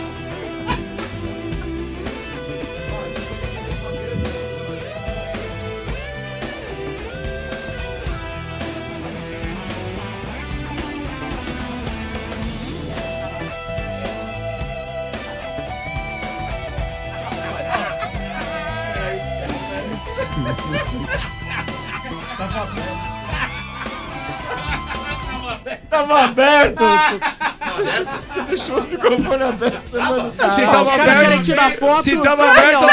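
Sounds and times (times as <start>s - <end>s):
laughter: 0.0s - 4.7s, 17.0s - 32.9s
instrumental music track: 0.0s - 25.8s
speech: 26.1s - 32.9s.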